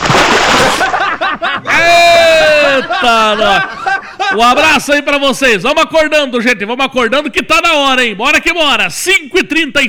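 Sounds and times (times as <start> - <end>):
bucket of water thrown over someone: 0.0 - 1.3
laughter: 0.6 - 4.9
speech: 3.0 - 9.8.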